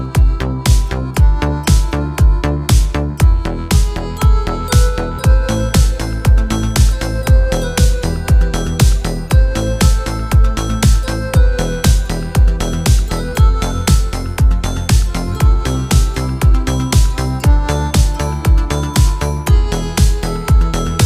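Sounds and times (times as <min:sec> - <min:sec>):
italo disco style instrumental cover of Gregorian chant: 0:00.0 - 0:21.0.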